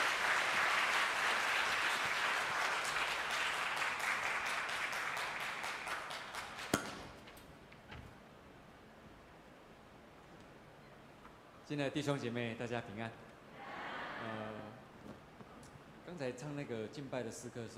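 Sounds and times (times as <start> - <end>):
audience applause: 0.0 - 6.8
speech: 11.7 - 13.3, 16.2 - 17.7.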